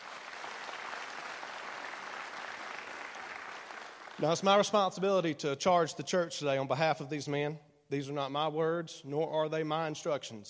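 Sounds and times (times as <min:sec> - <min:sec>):
audience applauding: 0:00.0 - 0:04.4
speech: 0:04.2 - 0:10.4.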